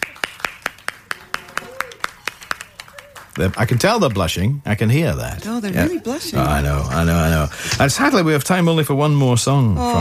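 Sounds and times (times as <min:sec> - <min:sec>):
round of applause for the band: 0:00.0 - 0:04.5
speech: 0:03.4 - 0:09.9.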